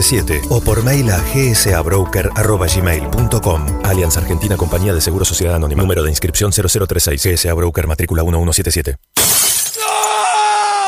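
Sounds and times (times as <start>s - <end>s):
speech: 0.0s - 9.4s
phone screen glass shattering: 9.1s - 10.3s.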